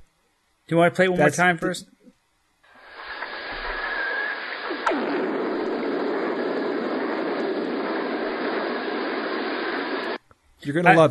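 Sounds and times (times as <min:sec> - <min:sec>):
speech: 0:00.7 - 0:02.0, 0:10.6 - 0:11.0
steady underwater rushing roar: 0:02.8 - 0:10.2
lightning strike recorded underwater: 0:03.1 - 0:10.2.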